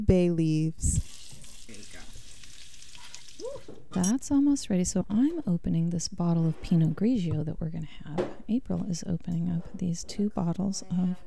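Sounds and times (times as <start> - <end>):
speech: 0.0 - 1.1, 3.4 - 11.2
potatoes sizzling in a hot pot: 0.9 - 3.6.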